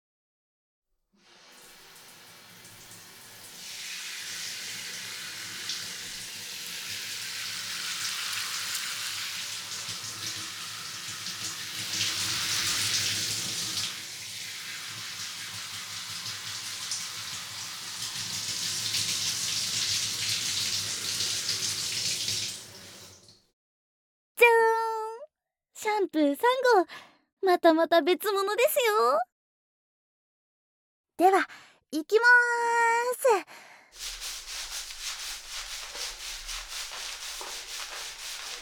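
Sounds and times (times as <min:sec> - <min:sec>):
shower water rinsing hair: 0:01.2 - 0:23.4, 0:34.0 - 0:38.6
speech: 0:26.0 - 0:29.3, 0:31.2 - 0:34.2.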